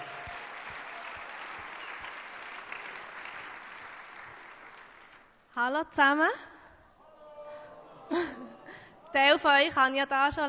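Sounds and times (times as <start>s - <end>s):
audience applause: 0.0s - 5.2s
speech: 5.6s - 6.5s, 8.1s - 8.5s, 9.2s - 10.4s.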